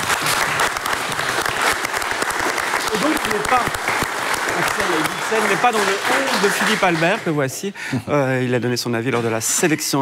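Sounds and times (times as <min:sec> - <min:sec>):
applause: 0:00.0 - 0:07.6
speech: 0:03.5 - 0:03.8, 0:04.8 - 0:10.0.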